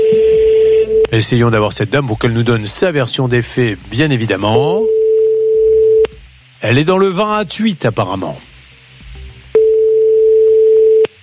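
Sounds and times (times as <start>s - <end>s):
telephone ringing tone of an unanswered call: 0.0s - 1.1s, 4.9s - 6.1s, 9.6s - 11.1s
speech: 1.1s - 5.0s, 6.6s - 8.5s.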